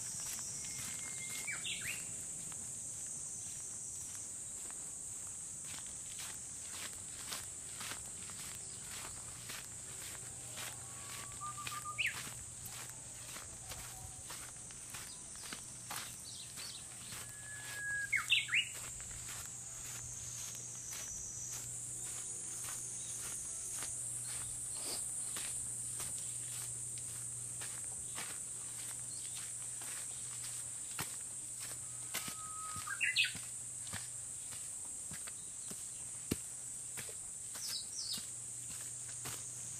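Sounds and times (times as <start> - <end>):
high shrill insect drone in summer mountains: 0.0 - 35.2
soft footsteps walking in summer mountains: 2.4 - 39.5
short rising bird calls: 10.9 - 12.4, 17.0 - 18.8, 32.2 - 33.4.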